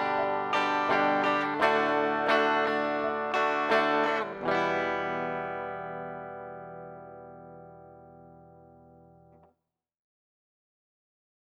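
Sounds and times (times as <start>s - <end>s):
guitar strumming pattern: 0.0s - 9.4s.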